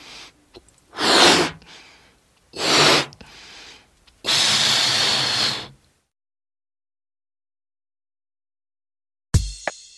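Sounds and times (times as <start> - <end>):
blowing up a balloon: 0.9 - 1.6, 2.6 - 3.2, 4.2 - 5.8.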